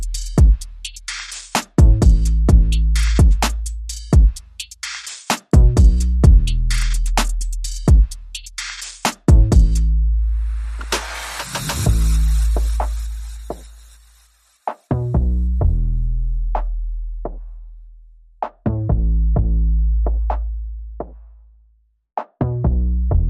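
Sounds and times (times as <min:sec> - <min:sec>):
drums: 0:00.0 - 0:13.9
bass: 0:00.0 - 0:14.2, 0:14.9 - 0:23.2.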